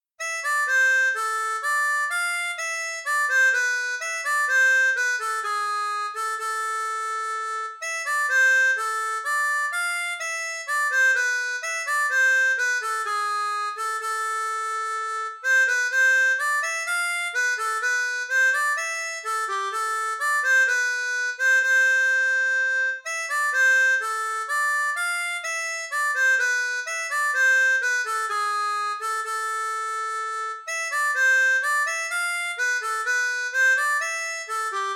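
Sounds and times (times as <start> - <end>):
harmonica playing a bourree: 0.2 - 34.9.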